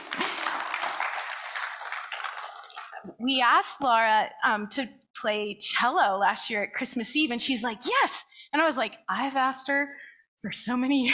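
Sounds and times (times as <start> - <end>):
audience applause: 0.0 - 3.1
speech: 3.2 - 11.1.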